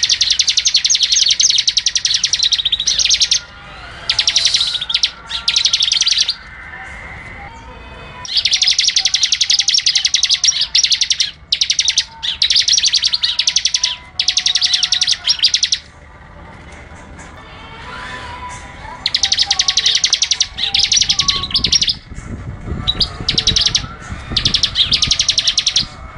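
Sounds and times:
bird song of rapid high-pitched chirping notes: 0.0s - 3.5s, 4.1s - 6.5s, 8.2s - 15.9s, 19.0s - 22.2s, 22.8s - 26.0s.

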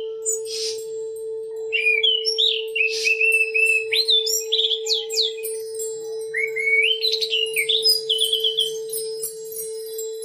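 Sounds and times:
Oriental magpie-robin song with clear whistled phrases: 0.0s - 1.0s, 1.6s - 10.0s.

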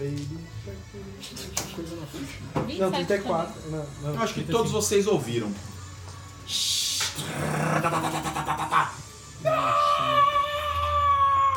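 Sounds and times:
speech: 0.0s - 5.7s, 7.2s - 9.0s
creature noise: 7.2s - 11.2s
person screaming: 7.3s - 11.5s.

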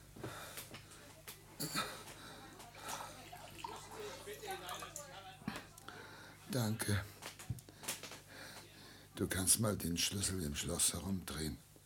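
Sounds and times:
speech: 1.6s - 2.0s, 6.5s - 7.1s, 9.2s - 11.7s
water poured into a glass: 2.7s - 5.1s.

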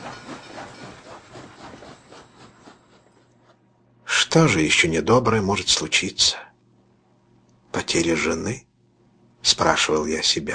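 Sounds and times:
train rolling along rails across the steppe: 0.0s - 3.4s
speech: 4.4s - 6.5s, 7.9s - 8.7s, 9.4s - 10.5s.

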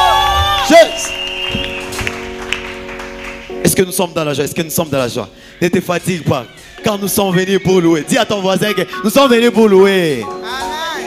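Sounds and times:
audience cheering and calling out: 0.0s - 3.1s
steady sustained musical tone: 0.7s - 10.6s
speech: 3.8s - 10.4s.

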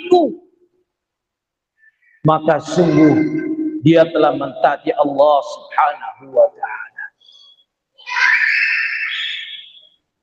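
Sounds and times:
speech: 2.2s - 6.8s
small child screaming in an audience: 2.7s - 3.6s, 8.0s - 9.7s.

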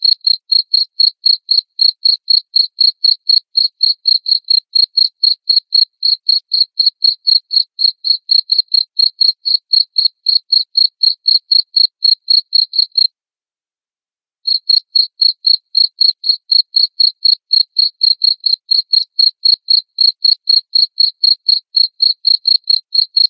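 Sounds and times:
cricket chirping: 0.0s - 13.1s, 14.5s - 23.2s.

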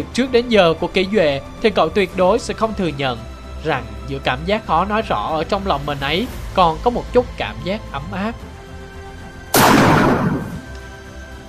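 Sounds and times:
speech: 0.0s - 8.5s
deafening gunshot in a video game: 9.6s - 10.7s.

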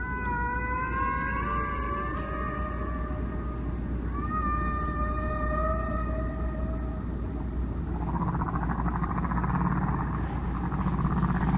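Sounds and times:
humpback whale song: 0.0s - 11.5s
low rumble: 2.6s - 11.5s.

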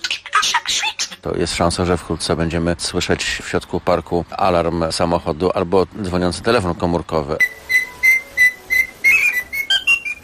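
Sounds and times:
speech: 0.4s - 7.6s
rose-ringed parakeet giving shrill whistled notes: 7.4s - 10.2s.

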